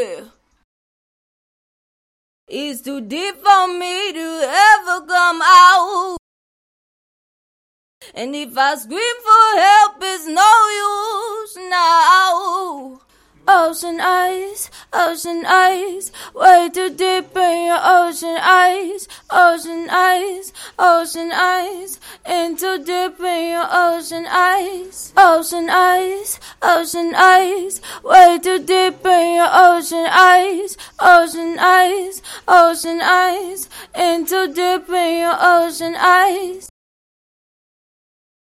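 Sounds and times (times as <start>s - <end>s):
female pop singing: 0.0s - 0.4s, 2.5s - 6.2s, 8.0s - 36.7s.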